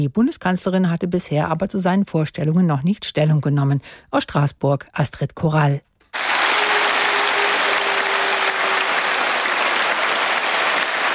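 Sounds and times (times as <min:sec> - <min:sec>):
speech: 0:00.0 - 0:05.9
applause in the European Parliament in Strasbourg: 0:06.2 - 0:11.1.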